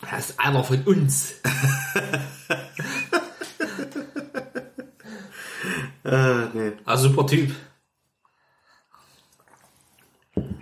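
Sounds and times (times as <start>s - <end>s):
speech: 0.1s - 2.6s, 6.1s - 7.7s
laughter: 1.4s - 6.3s
person sipping and slurping water: 7.8s - 10.6s.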